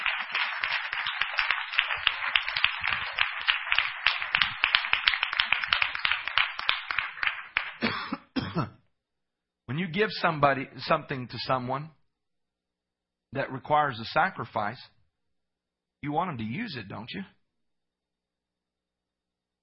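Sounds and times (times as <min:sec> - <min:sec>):
crowd applauding: 0:00.0 - 0:08.2
speech: 0:09.9 - 0:12.0, 0:13.3 - 0:15.0, 0:16.0 - 0:17.4.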